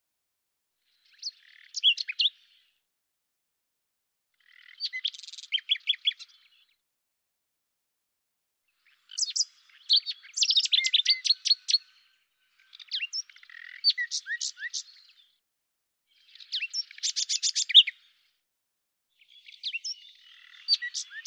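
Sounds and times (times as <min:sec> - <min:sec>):
common nightingale song: 0:01.0 - 0:02.7, 0:04.4 - 0:06.7, 0:08.8 - 0:15.3, 0:16.1 - 0:18.0, 0:19.2 - 0:21.2.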